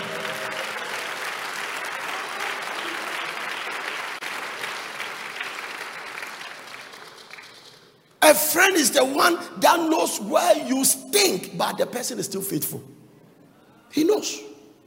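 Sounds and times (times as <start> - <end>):
audience clapping: 0.0 - 8.2
speech: 8.3 - 13.0, 13.9 - 14.5.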